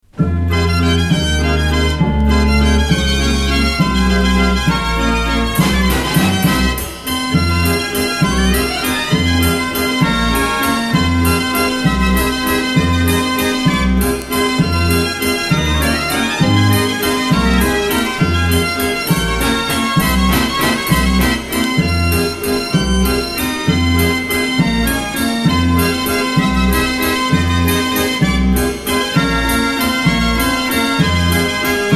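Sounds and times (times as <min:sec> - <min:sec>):
barrel organ: 0:00.1 - 0:31.9.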